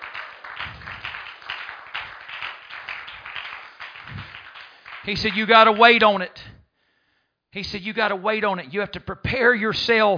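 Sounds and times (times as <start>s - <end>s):
audience hand clapping: 0.0s - 6.2s
speech: 5.0s - 6.5s, 7.6s - 10.1s.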